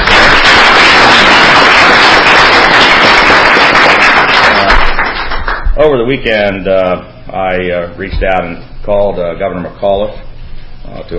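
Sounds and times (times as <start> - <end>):
audience applause: 0.0 - 5.6
speech: 6.1 - 10.3, 10.9 - 11.1.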